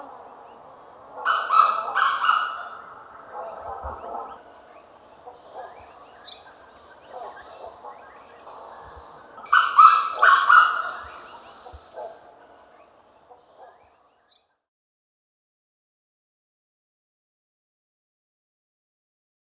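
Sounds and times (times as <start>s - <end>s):
Grey Junglefowl crowing call: 0.0s - 13.9s.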